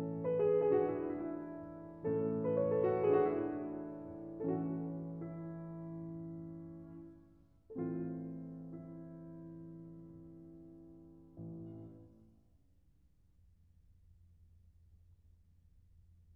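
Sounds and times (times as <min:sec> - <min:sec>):
piano waltz: 0:00.0 - 0:12.4.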